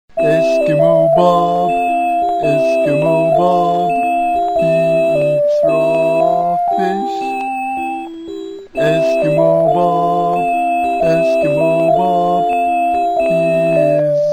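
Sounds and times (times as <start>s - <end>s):
theme music: 0.2s - 14.2s.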